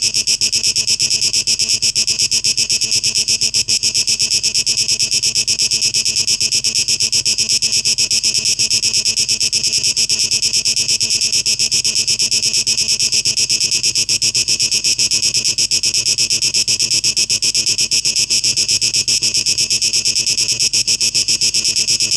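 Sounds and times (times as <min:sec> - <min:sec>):
cicadas buzzing: 0:00.0 - 0:22.1.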